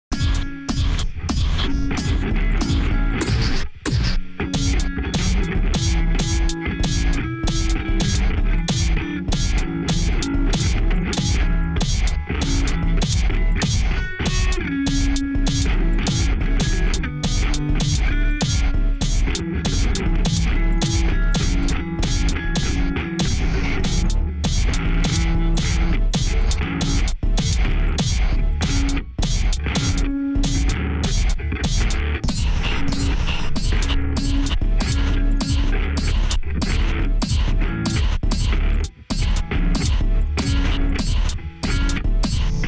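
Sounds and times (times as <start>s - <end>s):
guitar: 0.0s - 42.6s.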